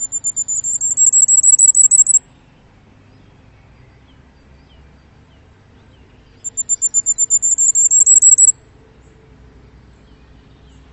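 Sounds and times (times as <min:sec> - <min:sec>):
bird piping notes: 0:00.0 - 0:02.3, 0:05.9 - 0:08.6
low background rumble: 0:00.0 - 0:10.9.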